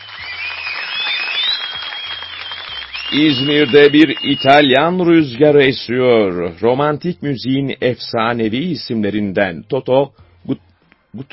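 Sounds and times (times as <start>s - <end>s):
crowd applauding: 0.0s - 5.0s
faint high whistle-like tone: 0.0s - 5.4s
speech: 3.1s - 11.3s.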